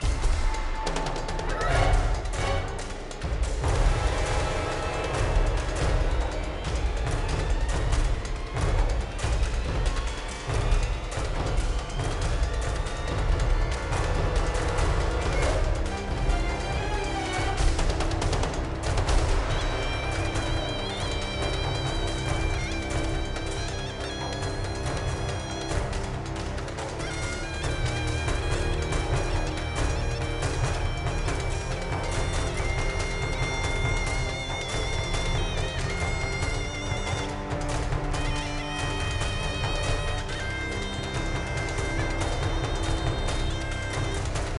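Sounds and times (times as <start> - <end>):
intense music loop: 0.0 - 44.5.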